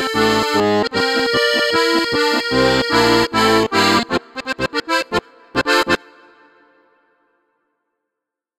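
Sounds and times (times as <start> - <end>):
bass chords and diskant: 0.0 - 6.1.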